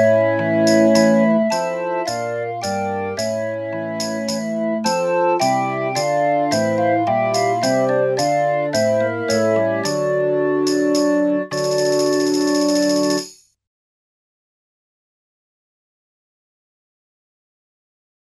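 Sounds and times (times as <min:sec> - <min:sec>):
galliard dance music: 0:00.0 - 0:13.3.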